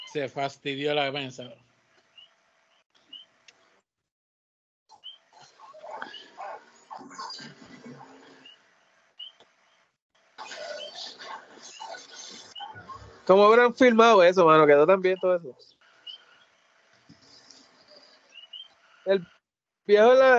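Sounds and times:
speech: 0.1s - 1.7s, 13.3s - 15.7s, 19.1s - 20.3s
dogs grunting and snarling: 5.3s - 8.5s, 10.4s - 13.3s, 17.1s - 18.8s.

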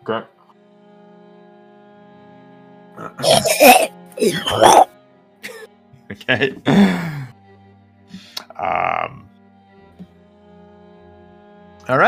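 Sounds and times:
speech: 0.0s - 0.4s, 3.0s - 4.9s, 6.1s - 7.2s, 8.6s - 9.3s, 11.9s - 12.0s
short grunt: 3.0s - 4.9s
voice imitating coughing and horking throat sounds: 3.0s - 4.9s, 5.5s - 5.7s.

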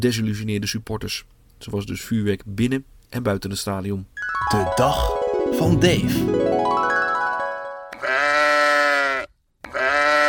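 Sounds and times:
speech: 0.0s - 6.9s
sheep bleating: 7.9s - 10.2s.

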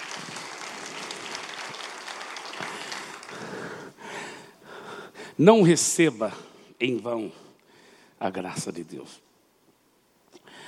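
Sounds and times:
audience applause: 0.0s - 4.0s
speech: 5.4s - 7.4s, 8.2s - 9.3s.

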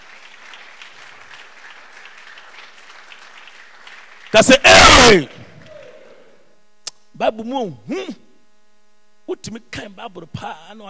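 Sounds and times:
crowd clapping: 0.0s - 6.4s
speech: 4.3s - 5.4s, 7.2s - 8.2s, 9.3s - 10.8s.

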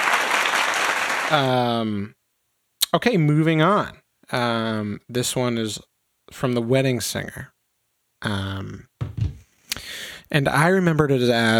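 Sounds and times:
clapping: 0.0s - 1.5s
speech: 1.3s - 2.2s, 2.9s - 7.5s, 8.2s - 9.3s, 10.3s - 11.5s.

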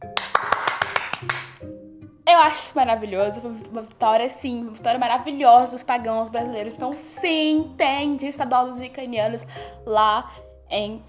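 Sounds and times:
hand claps: 0.0s - 1.6s
speech: 2.4s - 11.0s.

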